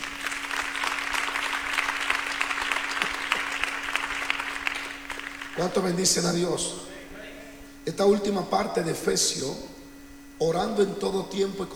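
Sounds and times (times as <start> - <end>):
crowd applause: 0.0 - 6.6
faint constant hum: 0.0 - 11.7
speech: 5.6 - 6.9, 7.9 - 9.8, 10.4 - 11.7.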